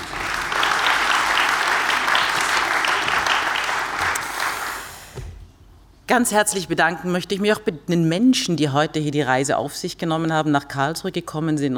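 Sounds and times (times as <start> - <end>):
audience applause: 0.0 - 5.1
speech: 6.1 - 11.7.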